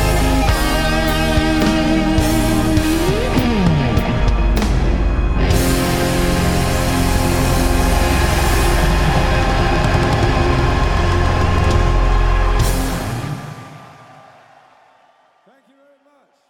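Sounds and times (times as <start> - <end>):
Sovtek Big Muff solo in a live broadcast from Wroclaw Poland: 0.0 - 13.4.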